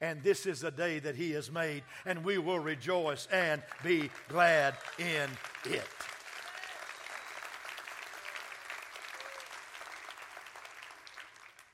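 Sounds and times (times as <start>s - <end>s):
speech: 0.0s - 6.1s
audience clapping: 3.2s - 11.7s.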